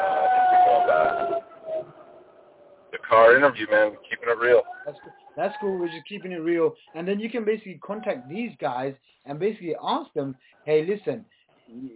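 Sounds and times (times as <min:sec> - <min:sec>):
fire engine siren: 0:00.0 - 0:02.5
speech: 0:03.1 - 0:11.9.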